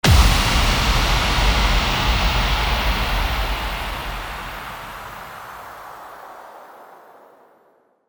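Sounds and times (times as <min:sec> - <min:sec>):
impact: 0:00.0 - 0:05.7.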